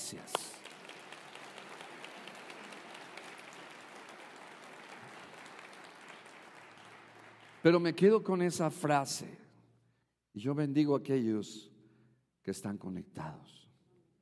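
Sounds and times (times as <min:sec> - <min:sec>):
speech: 0:00.1 - 0:00.4, 0:07.6 - 0:09.4, 0:10.4 - 0:11.7, 0:12.4 - 0:13.6
audience applause: 0:00.4 - 0:07.8.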